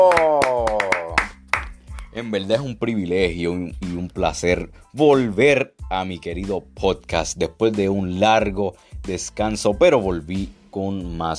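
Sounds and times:
hand claps: 0.0s - 2.8s
speech: 2.2s - 11.3s.

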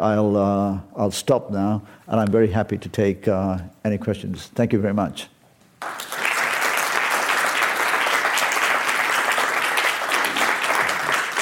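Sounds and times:
speech: 0.0s - 6.0s
audience applause after a talk: 5.8s - 11.4s.

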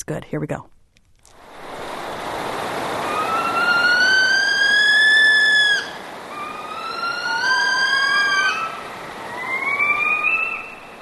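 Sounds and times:
hiss: 0.0s - 11.0s
saw-whet owl agitation calls: 3.0s - 11.0s.

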